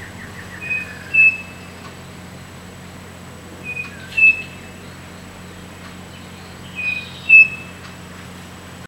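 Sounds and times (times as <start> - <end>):
bird calling with thin whistled notes: 0.0 - 1.8, 3.6 - 5.1, 6.1 - 7.8
low hum: 0.0 - 8.8.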